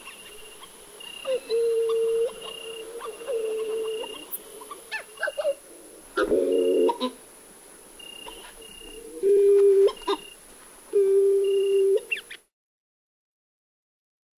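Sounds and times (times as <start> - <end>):
seabirds calling: 0.0 - 7.2, 8.0 - 10.4, 11.0 - 12.5.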